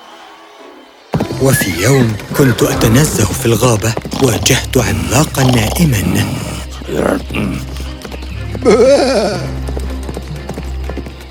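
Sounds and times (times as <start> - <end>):
speech: 1.4 - 7.7, 8.6 - 9.6
horse snorting: 1.7 - 8.0.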